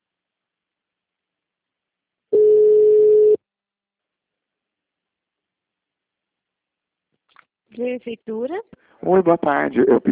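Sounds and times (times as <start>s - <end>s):
telephone busy tone after a dropped call: 2.4s - 3.4s
speech: 7.8s - 10.1s.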